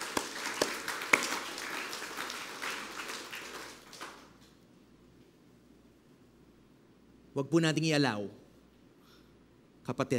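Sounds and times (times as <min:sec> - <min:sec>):
congregation applauding during a church service: 0:00.0 - 0:04.6
speech: 0:07.4 - 0:08.4, 0:09.9 - 0:10.1.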